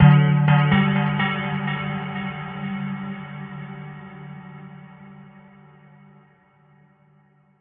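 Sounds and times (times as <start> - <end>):
echoing bells: 0.0 - 5.8.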